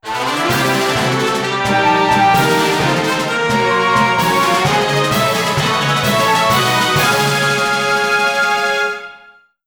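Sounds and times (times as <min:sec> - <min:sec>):
fanfare: 0:00.0 - 0:09.4.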